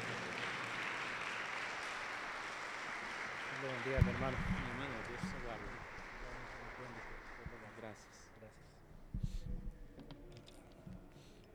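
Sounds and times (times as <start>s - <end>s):
audience applause: 0.0s - 8.6s
speech: 3.6s - 5.7s, 7.8s - 8.8s.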